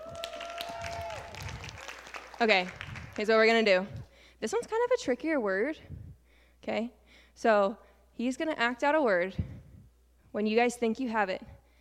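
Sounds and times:
audience applause: 0.0 - 3.2
speech: 2.4 - 6.0, 6.6 - 9.5, 10.3 - 11.5.

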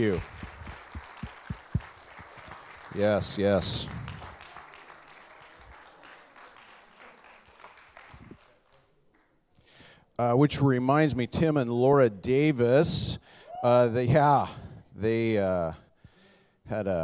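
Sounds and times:
speech: 0.0 - 0.4, 2.9 - 4.0, 10.2 - 15.8, 16.7 - 17.0
audience applauding: 0.0 - 9.3.

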